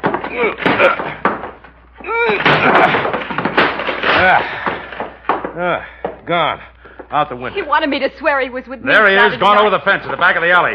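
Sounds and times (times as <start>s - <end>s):
bathroom door forced and broken open: 0.0s - 5.6s
speech: 0.3s - 1.0s, 4.2s - 4.6s, 5.6s - 10.7s.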